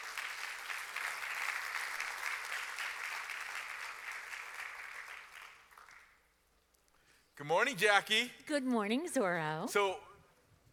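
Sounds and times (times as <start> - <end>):
audience applause: 0.0 - 6.2
speech: 7.4 - 10.1.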